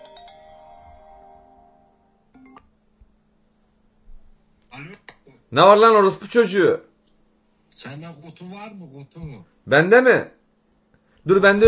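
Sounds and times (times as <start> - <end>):
mobile phone ringing with an incoming call: 0.0 - 2.6
speech: 4.8 - 6.9, 7.8 - 10.4, 11.2 - 11.6.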